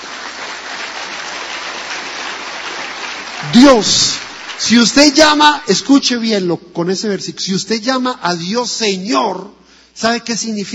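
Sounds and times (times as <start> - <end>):
audience applauding: 0.0 - 5.7
speech: 3.4 - 10.7.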